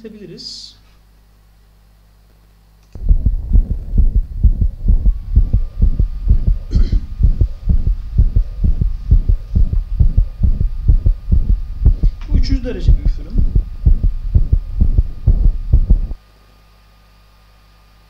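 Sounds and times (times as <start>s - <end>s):
speech: 0.0s - 0.8s
recorded heart murmur heartbeat thuds: 3.0s - 16.2s.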